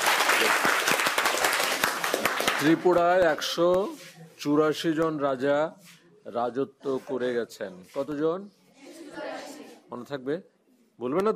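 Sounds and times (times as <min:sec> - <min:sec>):
audience clapping for a student at a school gathering: 0:00.0 - 0:03.8
speech: 0:02.6 - 0:09.2, 0:09.9 - 0:11.3.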